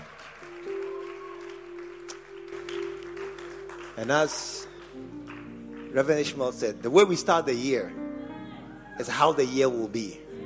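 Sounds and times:
audience clapping: 0.0 - 7.7
speech: 4.0 - 5.1, 6.0 - 8.0, 9.0 - 10.2.

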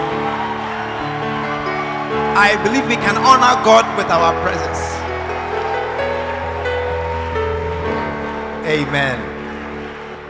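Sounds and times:
audience clapping: 0.0 - 10.2
speech: 2.4 - 5.0, 8.7 - 9.3.

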